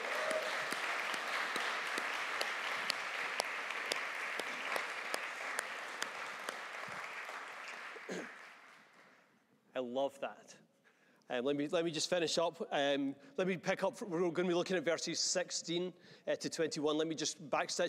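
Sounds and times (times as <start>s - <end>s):
crowd clapping: 0.0s - 9.2s
speech: 9.8s - 10.6s, 11.3s - 17.8s.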